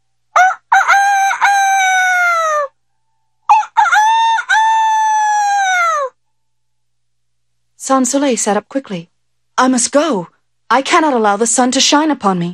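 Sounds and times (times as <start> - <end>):
village roosters crowing at dawn: 0.4 - 2.7, 3.5 - 6.2
speech: 7.9 - 12.5.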